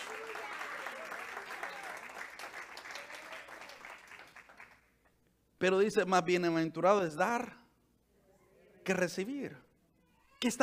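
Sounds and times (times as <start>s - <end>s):
audience applause: 0.0s - 4.8s
speech: 5.6s - 7.6s, 8.8s - 9.7s, 10.4s - 10.6s.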